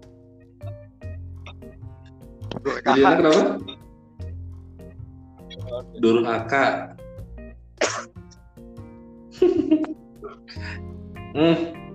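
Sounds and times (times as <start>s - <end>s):
speech: 2.6s - 3.7s, 6.0s - 6.9s, 11.4s - 11.8s
person coughing: 7.8s - 8.1s.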